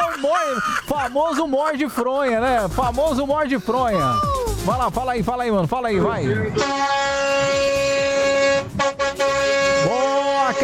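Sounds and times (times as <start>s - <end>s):
laughter: 0.0s - 4.4s
speech: 0.2s - 7.8s
car horn honking: 6.4s - 10.6s.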